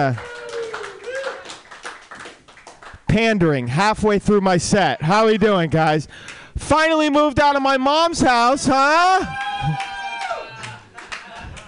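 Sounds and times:
speech: 0.0 - 0.4, 3.1 - 9.9
audience applause: 0.0 - 2.9, 9.3 - 11.6
crowd whooping and cheering: 0.2 - 1.6, 9.2 - 11.6.

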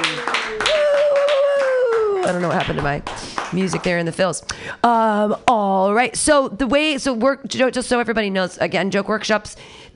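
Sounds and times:
audience clapping: 0.0 - 4.1
speech: 2.3 - 9.9.

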